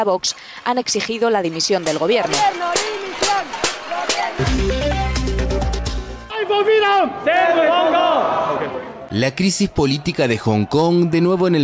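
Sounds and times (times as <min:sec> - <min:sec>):
speech: 0:00.0 - 0:03.4, 0:06.5 - 0:11.6
protest crowd shouting and chanting: 0:02.2 - 0:05.2, 0:06.2 - 0:11.6.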